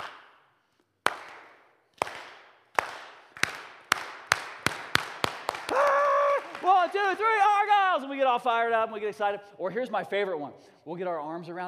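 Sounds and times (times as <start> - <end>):
slow clap: 0.0 - 7.3
speech: 8.0 - 11.6.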